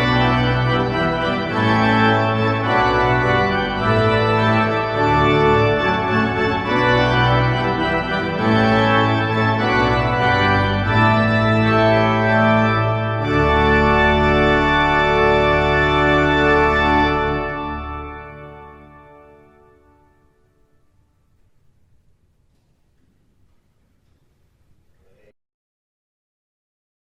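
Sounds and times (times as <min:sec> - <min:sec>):
hornpipe tune: 0:00.0 - 0:21.6.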